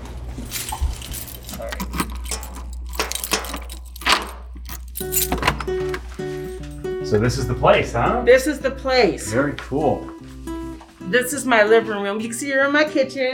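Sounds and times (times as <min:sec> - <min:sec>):
door opening: 0:00.4 - 0:06.7
keys jangling: 0:00.4 - 0:06.9
speech: 0:07.1 - 0:10.2, 0:11.1 - 0:13.3.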